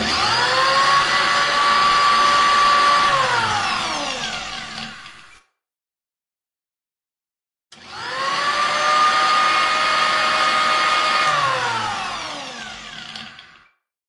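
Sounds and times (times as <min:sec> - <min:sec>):
blender running: 0:00.0 - 0:05.4, 0:07.8 - 0:13.7.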